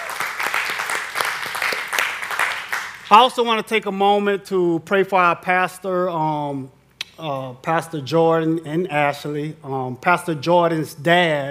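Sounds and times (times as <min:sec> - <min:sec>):
church congregation clapping for first-time visitors: 0:00.0 - 0:03.2
speech: 0:03.1 - 0:11.5.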